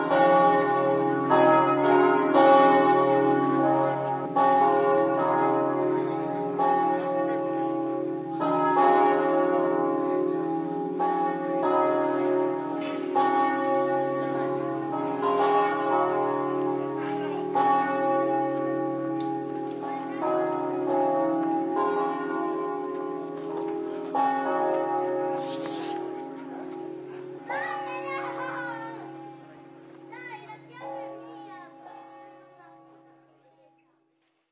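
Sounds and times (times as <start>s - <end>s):
bells ringing: 0.0s - 33.2s.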